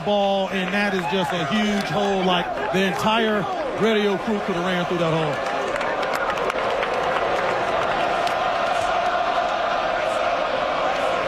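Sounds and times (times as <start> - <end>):
speech: 0.0 - 5.5
huge stadium crowd roaring: 0.0 - 11.2
scattered clapping: 0.5 - 2.4, 4.5 - 11.2
crowd chanting: 5.7 - 11.2.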